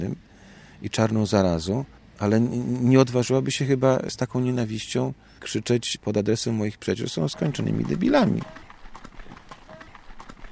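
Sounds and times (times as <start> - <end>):
speech: 0.0 - 8.6
horses' hooves clip-clopping: 7.3 - 10.5.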